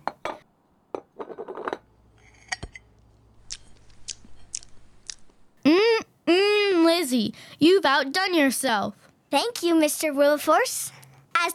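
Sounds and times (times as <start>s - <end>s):
person eating pudding with wet chewing and smacking: 3.4s - 5.5s
speech: 6.3s - 11.5s.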